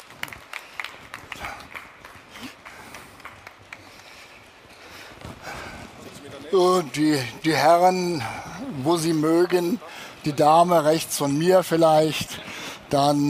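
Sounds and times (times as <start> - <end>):
audience applause: 0.0 - 4.6
speech: 6.5 - 13.2.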